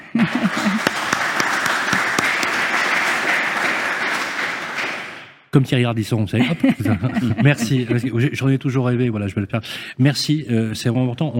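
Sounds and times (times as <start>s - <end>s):
laughter: 0.0s - 2.6s, 6.4s - 8.4s
audience applause: 0.0s - 5.3s
speech: 5.5s - 11.3s.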